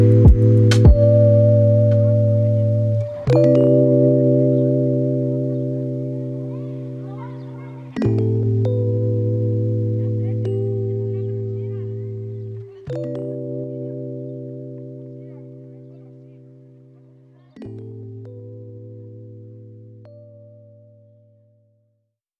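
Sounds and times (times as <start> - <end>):
lofi hip hop: 0.0 - 14.3.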